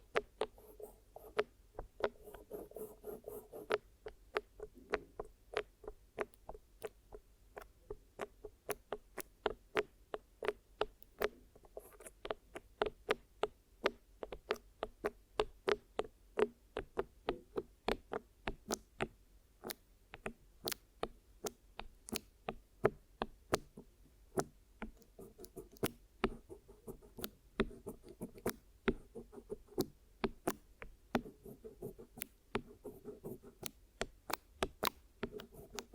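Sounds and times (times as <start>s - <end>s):
sharp dry clicks and taps of a glue ear massage and cleaning session: 0.1s - 35.9s
soft low rubbing and scratching: 0.4s - 3.8s, 11.6s - 12.2s, 23.7s - 29.9s, 31.2s - 33.8s, 35.2s - 35.9s.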